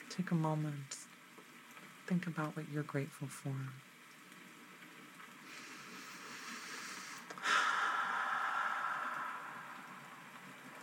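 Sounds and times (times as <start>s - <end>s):
rain falling: 0.0s - 10.8s
speech: 0.2s - 1.0s, 2.1s - 3.9s.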